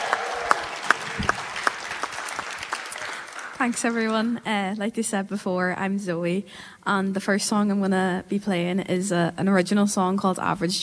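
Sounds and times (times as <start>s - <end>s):
audience applause: 0.0s - 4.3s
speech: 3.6s - 10.8s.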